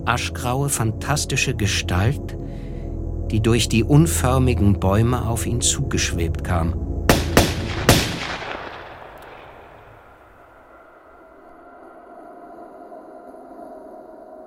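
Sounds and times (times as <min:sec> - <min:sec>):
speech: 0:00.0 - 0:02.6, 0:03.3 - 0:06.9
gunshots: 0:07.1 - 0:10.4.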